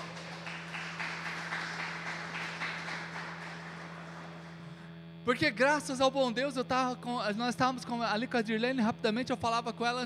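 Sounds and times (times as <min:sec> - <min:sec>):
audience applauding: 0:00.0 - 0:04.8
speech: 0:05.2 - 0:10.0.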